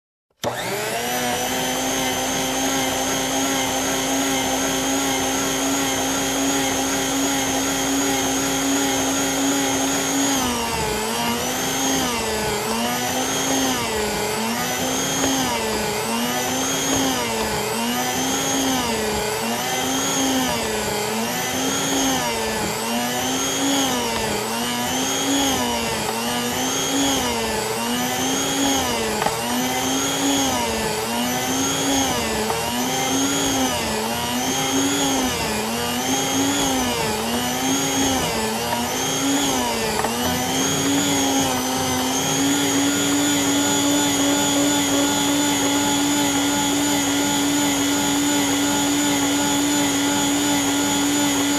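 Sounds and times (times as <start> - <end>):
hand mixer: 0.3 - 51.5.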